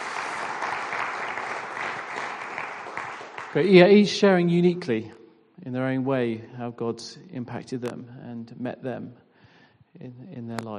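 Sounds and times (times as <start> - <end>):
audience applause: 0.0 - 4.1
speech: 3.6 - 9.2, 10.0 - 10.7.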